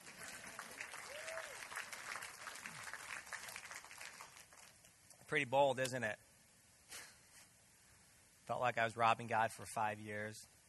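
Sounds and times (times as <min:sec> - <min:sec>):
audience applause: 0:00.0 - 0:04.8
speech: 0:05.3 - 0:06.2, 0:08.5 - 0:10.6.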